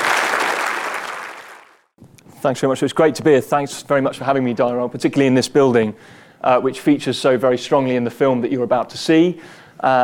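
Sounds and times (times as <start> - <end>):
audience applause: 0.0 - 1.9
speech: 2.4 - 10.0.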